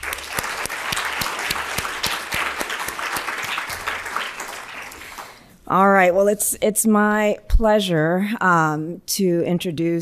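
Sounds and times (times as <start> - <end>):
audience applause: 0.0 - 5.4
speech: 5.7 - 10.0.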